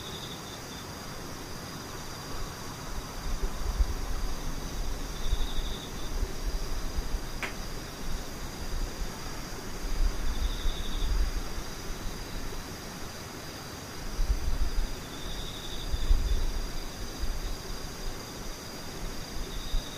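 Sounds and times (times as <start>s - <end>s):
insects chirring: 0.0s - 19.9s
sharp click: 7.4s - 7.6s.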